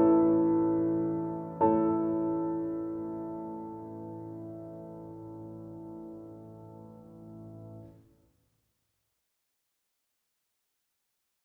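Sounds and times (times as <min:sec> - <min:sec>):
piano prelude: 0:00.0 - 0:08.0.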